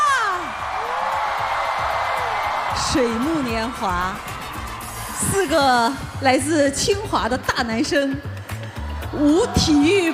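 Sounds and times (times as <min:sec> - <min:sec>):
audience applause and cheering: 0:00.0 - 0:06.2, 0:08.4 - 0:10.1
speech: 0:02.8 - 0:04.3, 0:05.2 - 0:08.3, 0:09.1 - 0:10.1.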